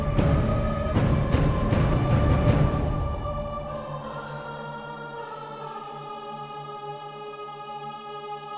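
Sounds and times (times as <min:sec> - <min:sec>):
high intensity cave music: 0:00.0 - 0:04.0.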